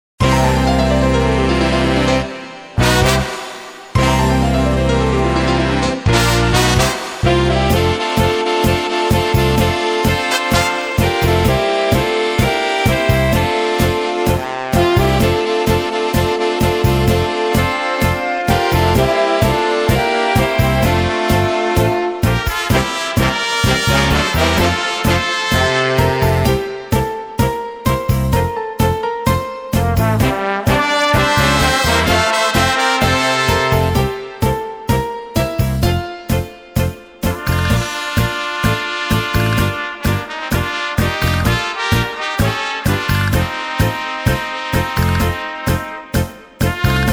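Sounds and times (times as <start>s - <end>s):
tango music: 0.2s - 47.1s.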